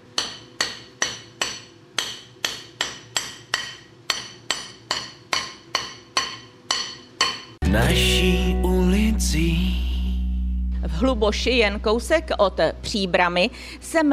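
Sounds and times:
hammer striking small metal ring: 0.2s - 7.6s
speech: 7.7s - 9.8s, 10.9s - 14.1s.

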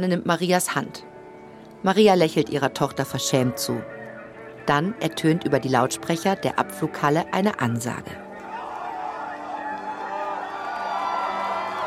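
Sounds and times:
speech: 0.0s - 1.1s, 1.8s - 4.0s, 4.7s - 8.3s
large crowd cheering in an airport departure hall: 8.2s - 11.8s.

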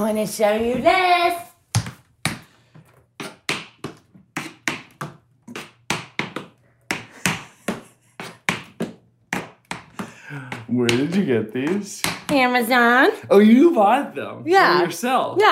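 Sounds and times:
speech: 0.0s - 1.4s, 10.8s - 15.5s
tap shoes striking a hard floor in slow shuffle steps: 0.6s - 12.9s.

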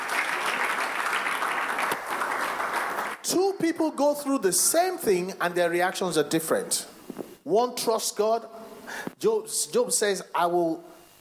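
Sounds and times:
crowd clapping: 0.0s - 3.3s
speech: 3.3s - 11.0s.

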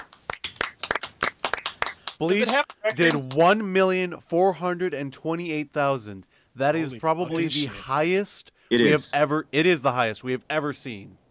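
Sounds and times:
hand claps: 0.0s - 3.8s
speech: 2.2s - 11.2s.

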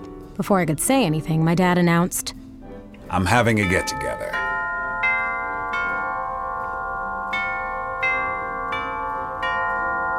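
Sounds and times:
speech: 0.4s - 2.4s, 3.1s - 4.4s
doorbell ringing: 3.2s - 10.1s.

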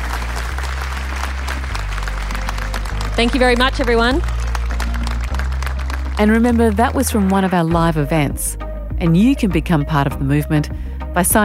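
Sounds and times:
audience applause: 0.0s - 7.8s
speech: 3.2s - 4.4s, 6.2s - 11.4s.

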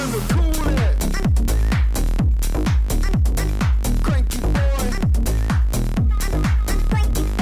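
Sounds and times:
dance-floor electronic single with pounding kick beat and dense synths: 0.0s - 7.4s.

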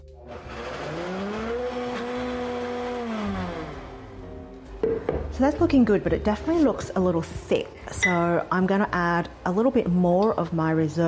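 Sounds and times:
blender blitzing pasta sauce: 0.2s - 4.3s
speech: 4.9s - 11.0s.

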